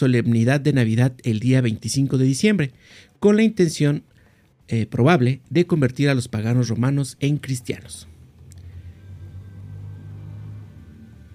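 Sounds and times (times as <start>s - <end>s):
speech: 0.0s - 4.1s, 4.7s - 8.1s
motorcycle passing by: 8.1s - 11.3s.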